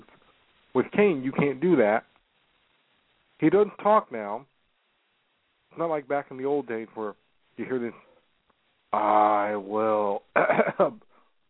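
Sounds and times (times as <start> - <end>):
speech: 0.8 - 2.1, 3.4 - 4.5, 5.8 - 8.1, 8.9 - 11.0
man clearing his throat: 10.4 - 11.0
man coughing: 10.4 - 11.0.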